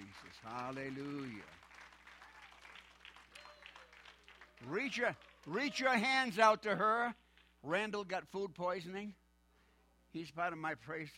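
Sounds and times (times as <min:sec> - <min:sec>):
audience clapping: 0:00.0 - 0:06.0
speech: 0:00.4 - 0:01.6, 0:04.6 - 0:09.2, 0:10.1 - 0:11.1.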